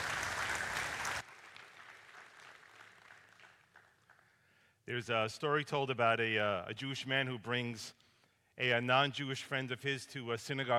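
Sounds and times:
audience applause at a King Street Community Church welcome for a visiting rabbi: 0:00.0 - 0:04.2
speech: 0:04.9 - 0:08.0, 0:08.6 - 0:10.7.

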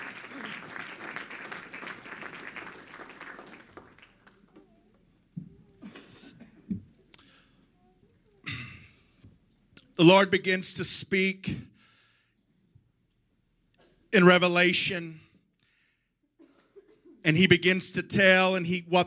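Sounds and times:
audience clapping: 0:00.0 - 0:04.8
speech: 0:10.0 - 0:11.7, 0:14.2 - 0:15.2, 0:17.3 - 0:19.0.

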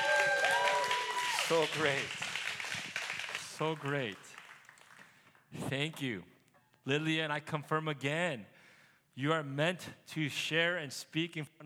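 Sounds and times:
voices calling out and cheering: 0:00.0 - 0:02.1
crowd applauding: 0:00.0 - 0:05.2
speech: 0:01.5 - 0:02.2, 0:03.6 - 0:04.4, 0:05.6 - 0:08.6, 0:09.2 - 0:11.6.

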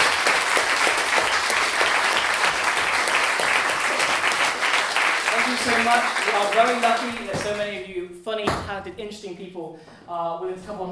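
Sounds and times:
audience applause: 0:00.0 - 0:07.6
speech: 0:05.8 - 0:10.9.

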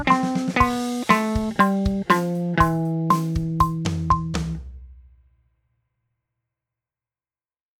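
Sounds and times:
musical loop in A minor Phrygian at 120 bpm: 0:00.2 - 0:04.6.

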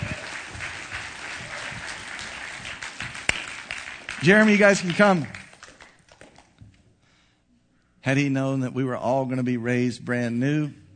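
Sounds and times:
audience clapping hands: 0:00.0 - 0:06.6
speech: 0:04.2 - 0:05.4, 0:08.1 - 0:10.8.

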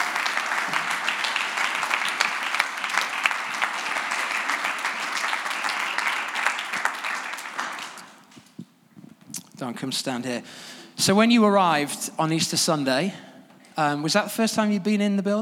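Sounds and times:
audience applause welcoming speaker: 0:00.0 - 0:08.4
speech: 0:09.6 - 0:15.4.

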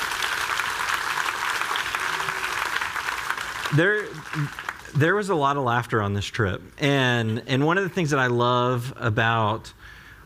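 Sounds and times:
audience applause: 0:00.0 - 0:05.2
speech: 0:03.7 - 0:10.0.

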